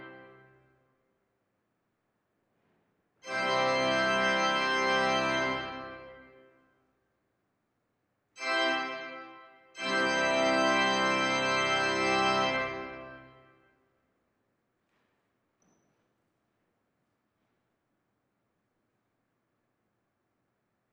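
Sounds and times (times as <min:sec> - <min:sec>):
organ recorded with supercardioid Sennheiser shotgun mics: 0:00.0 - 0:00.6, 0:03.3 - 0:06.4, 0:08.4 - 0:13.6.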